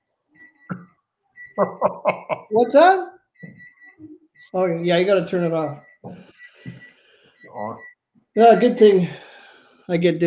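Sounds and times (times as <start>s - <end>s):
stove electronic beep: 0.4s - 1.9s, 3.2s - 4.6s, 5.6s - 8.9s
laughter: 1.5s - 2.6s
speech: 1.6s - 3.1s, 4.5s - 6.3s, 7.6s - 9.3s, 9.9s - 10.2s.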